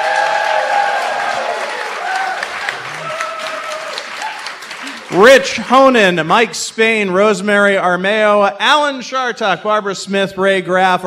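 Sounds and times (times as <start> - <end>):
live audience of about 150 people clapping at the Linda in downtown Albany: 0.0 - 6.4
speech: 5.2 - 11.0.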